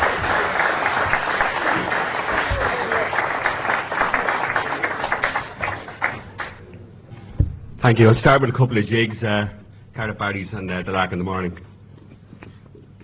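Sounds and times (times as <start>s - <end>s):
audience applause welcoming a Dublin piper to the stage: 0.0s - 6.7s
speech: 7.9s - 11.7s.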